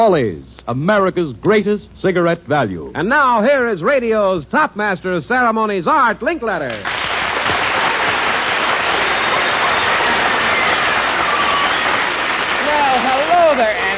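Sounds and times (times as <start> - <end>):
speech: 0.0 - 7.0
audience applause: 6.7 - 13.9.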